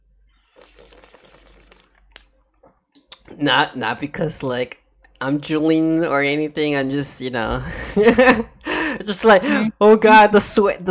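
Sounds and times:
person sipping a drink: 0:00.3 - 0:02.3
swallows: 0:00.4 - 0:02.3
speech: 0:03.4 - 0:10.8.

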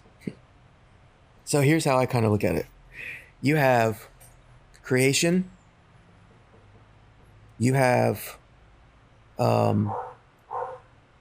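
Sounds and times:
speech: 0:01.5 - 0:04.1, 0:04.9 - 0:05.6, 0:07.6 - 0:08.4, 0:09.4 - 0:10.1
dog barking: 0:09.9 - 0:10.9.

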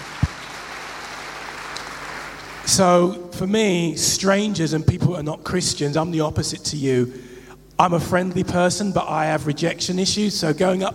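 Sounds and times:
audience clapping: 0:00.0 - 0:02.8
speech: 0:02.7 - 0:10.9.

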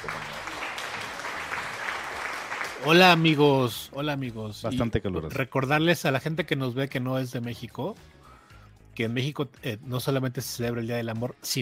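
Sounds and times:
warm applause: 0:00.0 - 0:03.9
speech: 0:02.8 - 0:08.2, 0:09.0 - 0:11.5.

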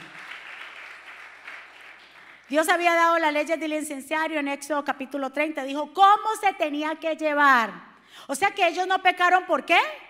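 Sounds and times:
loud applause: 0:00.0 - 0:02.5
speech: 0:02.5 - 0:10.0.

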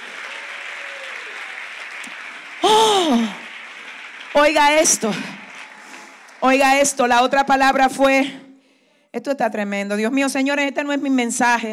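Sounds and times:
audience applauding: 0:00.0 - 0:07.8
speech: 0:02.6 - 0:03.4, 0:04.4 - 0:05.4, 0:06.4 - 0:08.4, 0:09.1 - 0:11.7.

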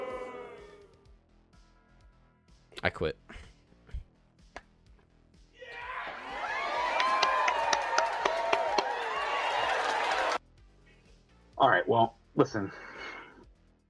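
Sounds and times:
speech: 0:02.8 - 0:03.5, 0:11.6 - 0:12.9
audience applause and cheering: 0:05.6 - 0:10.4.

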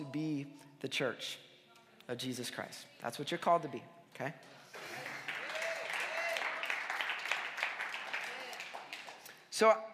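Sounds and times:
speech: 0:00.1 - 0:01.5, 0:02.1 - 0:05.0, 0:09.6 - 0:09.9
audience clapping: 0:04.7 - 0:09.5.

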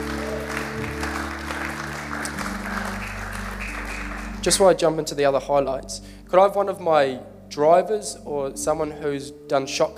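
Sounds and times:
audience applause: 0:00.0 - 0:04.8
speech: 0:04.4 - 0:09.9.

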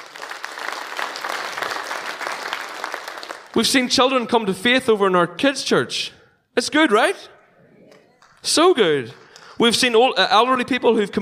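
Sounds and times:
audience applause: 0:00.0 - 0:03.6
speech: 0:03.6 - 0:07.3, 0:08.4 - 0:11.1.

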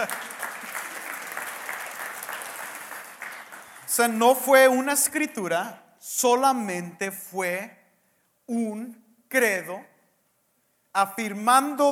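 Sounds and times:
speech: 0:00.0 - 0:00.2, 0:04.0 - 0:07.8, 0:08.5 - 0:09.9, 0:10.9 - 0:11.9
audience applauding: 0:00.0 - 0:04.1.

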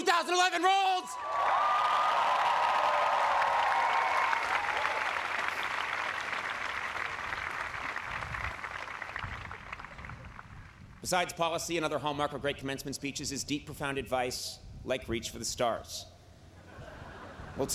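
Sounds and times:
speech: 0:00.2 - 0:01.7, 0:11.1 - 0:16.1, 0:17.6 - 0:17.7
audience applause: 0:01.2 - 0:10.8
laughter: 0:16.6 - 0:17.7.

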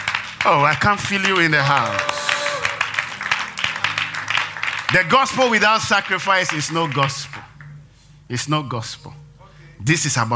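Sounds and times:
audience clapping hands: 0:00.0 - 0:07.8
speech: 0:00.4 - 0:02.2, 0:04.9 - 0:07.3, 0:08.3 - 0:09.2, 0:09.8 - 0:10.3.

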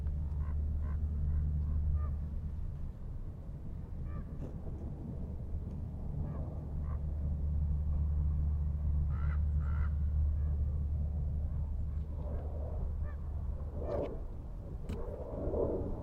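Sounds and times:
low engine-like hum at Manzanita Barren in Montclair, CA: 0:00.0 - 0:16.0.

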